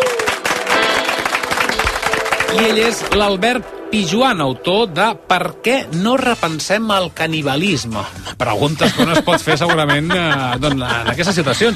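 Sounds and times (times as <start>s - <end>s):
audience applause for a guest author on a Catalan talk show: 0.0s - 3.2s
speech: 2.5s - 11.7s
laughter: 8.3s - 11.7s.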